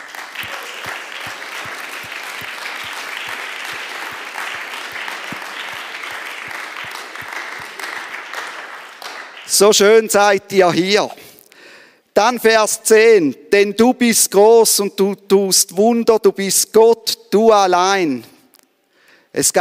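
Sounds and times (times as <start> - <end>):
audience applause: 0.0 - 9.7
speech: 9.6 - 11.2, 12.2 - 18.3, 19.4 - 19.5.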